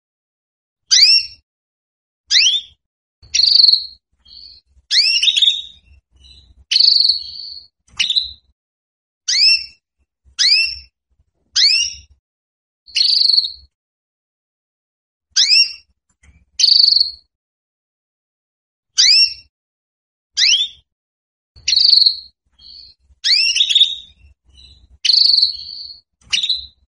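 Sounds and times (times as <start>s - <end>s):
female Belgian canary calling for mating: 0.9s - 1.4s, 2.3s - 8.5s, 9.3s - 9.8s, 10.4s - 10.9s, 11.6s - 12.2s, 12.9s - 13.7s, 15.4s - 15.9s, 16.6s - 17.3s, 19.0s - 19.5s, 20.4s - 20.9s, 21.6s - 26.9s.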